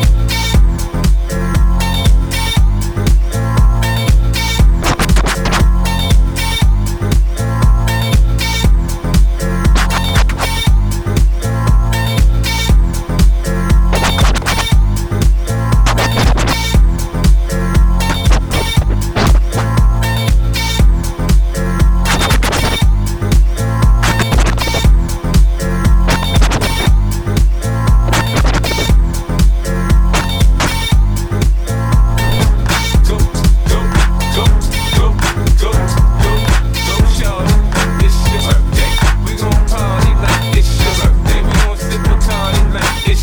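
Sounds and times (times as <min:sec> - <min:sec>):
scratching: 0:00.1 - 0:43.2.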